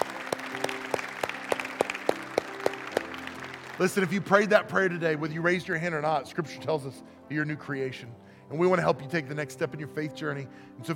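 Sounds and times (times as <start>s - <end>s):
audience rhythmic clapping: 0.0s - 5.0s
speech: 3.8s - 10.9s.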